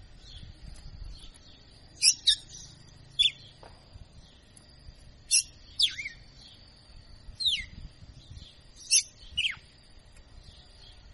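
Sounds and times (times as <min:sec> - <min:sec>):
female red-cowled cardinal singing whistled phrases in açoitando style: 0:02.0 - 0:03.4, 0:05.3 - 0:06.2, 0:07.4 - 0:07.8, 0:08.8 - 0:09.6.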